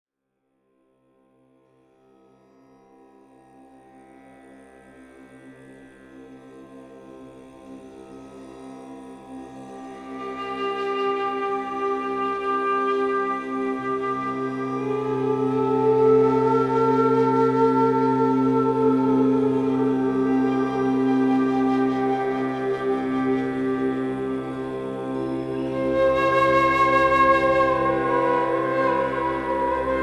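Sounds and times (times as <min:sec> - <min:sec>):
bansuri bamboo flute: 0:09.8 - 0:30.0.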